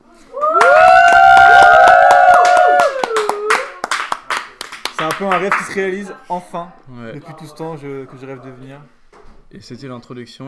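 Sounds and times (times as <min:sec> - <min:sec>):
audience clapping: 0:00.4 - 0:06.0
speech: 0:05.2 - 0:10.4.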